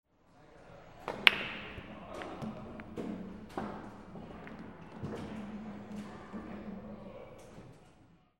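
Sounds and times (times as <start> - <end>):
billiard balls: 0.8 - 7.4.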